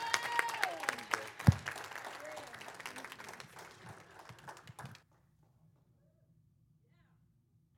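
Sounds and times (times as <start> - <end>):
standing church congregation applause welcoming a pastor: 0.0 - 5.0.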